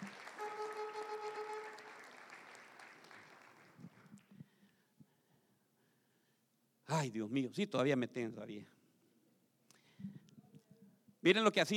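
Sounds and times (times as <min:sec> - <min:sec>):
audience applause: 0:00.0 - 0:04.3
speech: 0:07.0 - 0:08.8, 0:11.2 - 0:11.7.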